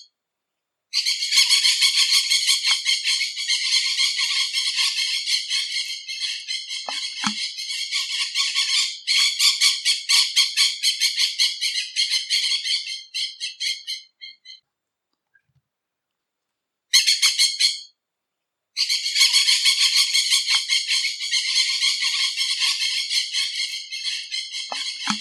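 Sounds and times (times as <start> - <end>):
red-fronted tiriba parakeet calling: 0.9 - 14.6, 18.8 - 25.1.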